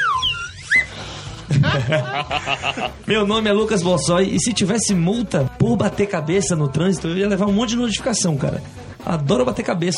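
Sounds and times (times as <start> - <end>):
little squeaky horn sound effect: 0.0 - 1.0
laughter: 1.4 - 3.1
speech: 1.7 - 9.9.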